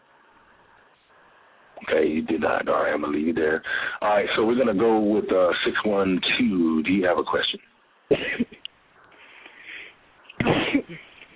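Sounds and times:
speech: 0:01.8 - 0:08.4
person sneezing: 0:10.4 - 0:11.3.

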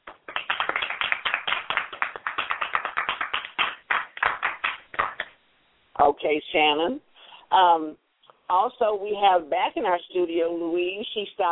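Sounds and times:
studio audience on a Christian talk show clapping: 0:00.0 - 0:05.4
speech: 0:06.0 - 0:11.5.

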